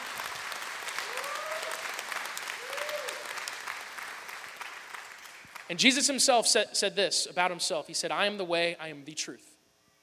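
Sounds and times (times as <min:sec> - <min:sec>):
audience clapping: 0:00.0 - 0:06.1
speech: 0:05.7 - 0:09.5.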